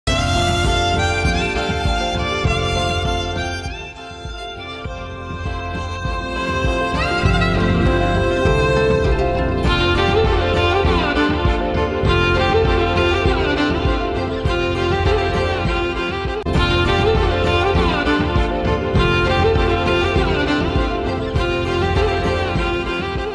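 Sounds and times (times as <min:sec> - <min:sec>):
background music ringtone: 0:00.0 - 0:23.3.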